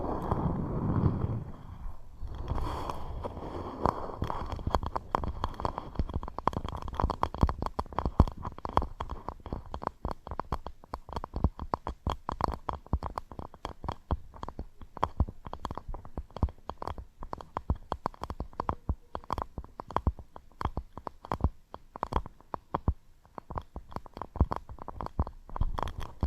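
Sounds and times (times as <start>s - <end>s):
low rumbling: 0.0s - 6.0s
quick irregular taps and scratches: 1.8s - 26.2s.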